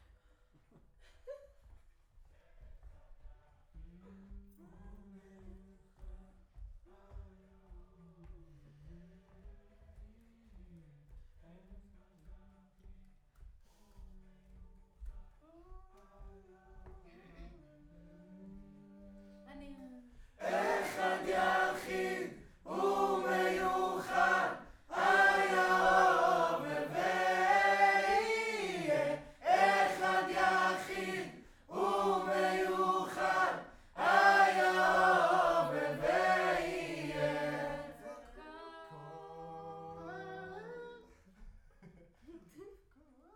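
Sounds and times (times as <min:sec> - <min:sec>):
distant choir: 0:20.4 - 0:38.2.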